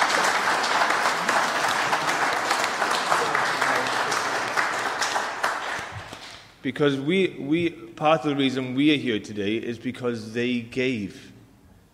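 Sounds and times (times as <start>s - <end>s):
audience clapping: 0.0s - 6.6s
speech: 6.6s - 11.3s.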